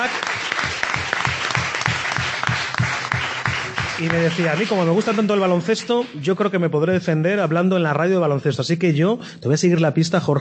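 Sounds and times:
applause: 0.0s - 6.5s
speech: 4.0s - 10.4s.

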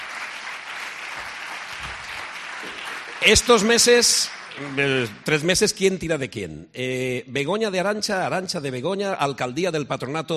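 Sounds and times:
audience applauding: 0.0s - 5.7s
speech: 3.2s - 10.3s.

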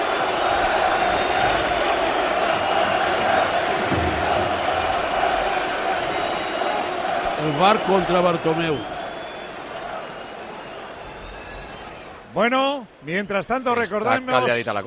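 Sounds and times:
stadium crowd chanting in protest: 0.0s - 12.2s
speech: 7.6s - 9.0s, 12.4s - 14.8s.

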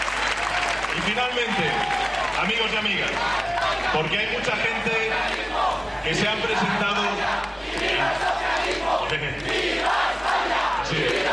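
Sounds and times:
speech: 1.0s - 8.3s
large crowd shouting rhythmic political chants in unison: 2.9s - 11.3s.

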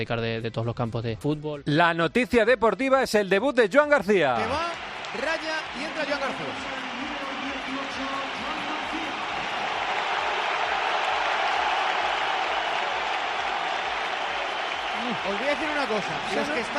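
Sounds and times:
speech: 0.0s - 6.8s, 15.1s - 16.7s
stadium crowd applause: 4.4s - 16.7s.

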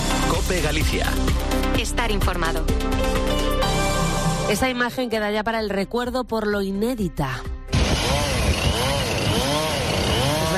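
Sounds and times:
speech: 0.5s - 3.8s, 4.5s - 8.2s
saw cutting up a huge whale carcass: 7.7s - 10.5s.

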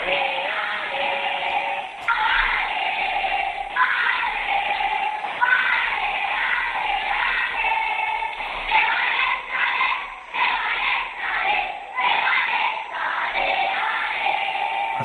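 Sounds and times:
crowd chanting in unison: 0.0s - 15.0s.

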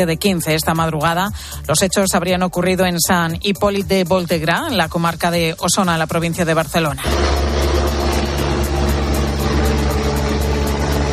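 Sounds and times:
speech: 0.0s - 7.6s
police helicopter flying overhead: 7.0s - 11.1s.

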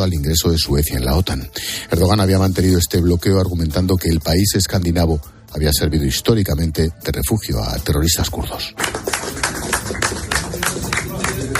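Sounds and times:
speech: 0.0s - 9.0s
soft applause: 8.8s - 11.5s
murmur of voices: 9.2s - 11.5s.

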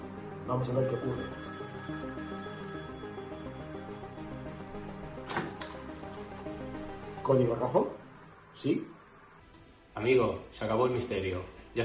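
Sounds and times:
speech: 0.5s - 2.2s, 7.3s - 8.0s, 8.6s - 9.0s, 10.0s - 11.8s
telephone ringing: 0.7s - 5.0s.

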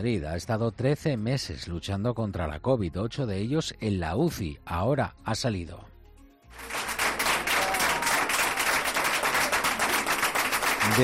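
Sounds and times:
speech: 0.0s - 5.9s
crowd applauding: 6.5s - 11.0s.

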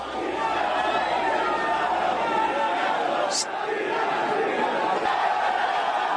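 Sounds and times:
fans cheering players arriving at hotel: 0.0s - 6.1s.

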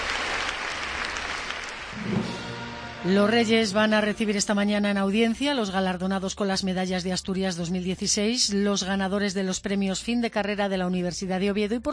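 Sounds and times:
audience applause welcoming the monarchs: 0.0s - 2.4s
speech: 3.0s - 11.9s.

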